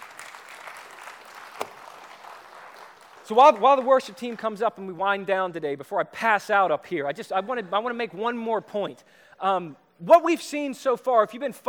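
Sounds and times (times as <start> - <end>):
audience clapping: 0.0 - 4.6
speech: 3.3 - 11.6.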